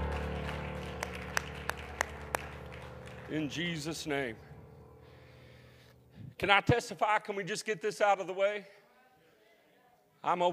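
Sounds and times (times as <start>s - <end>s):
audience clapping hands: 0.0s - 3.6s
low tonal drone: 0.0s - 3.6s
speech: 3.3s - 4.5s, 6.4s - 8.8s, 10.2s - 10.5s.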